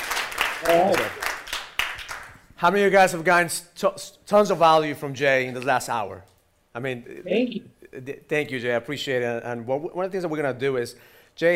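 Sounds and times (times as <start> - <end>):
hand claps: 0.0 - 2.5
speech: 0.6 - 1.2, 2.6 - 11.5.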